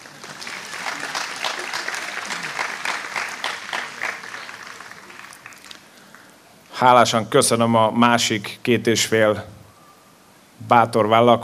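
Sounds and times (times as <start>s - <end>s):
audience applause: 0.0s - 6.2s
speech: 6.8s - 9.6s, 10.7s - 11.4s.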